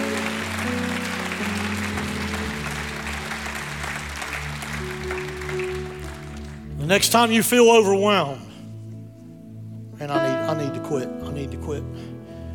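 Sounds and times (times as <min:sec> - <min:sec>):
audience clapping hands: 0:00.0 - 0:07.6
speech: 0:06.9 - 0:08.4, 0:10.9 - 0:12.1.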